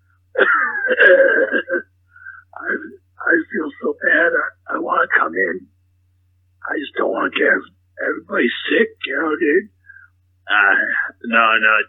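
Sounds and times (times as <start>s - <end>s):
short faint whine: 0.0s - 11.8s
loud raspy hacking cough: 0.4s - 1.8s
speech: 0.9s - 1.9s, 2.6s - 5.7s, 6.7s - 9.8s, 10.5s - 11.8s.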